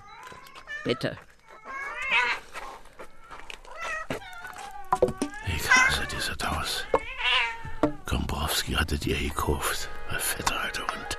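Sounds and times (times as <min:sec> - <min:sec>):
cats meowing and yowling: 0:00.0 - 0:08.2
speech: 0:00.8 - 0:01.3, 0:08.5 - 0:11.1.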